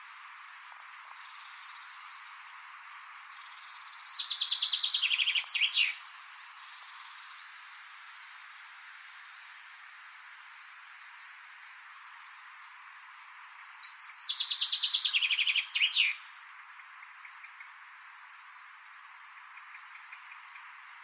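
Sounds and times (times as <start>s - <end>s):
common chaffinch song: 0.0s - 21.0s.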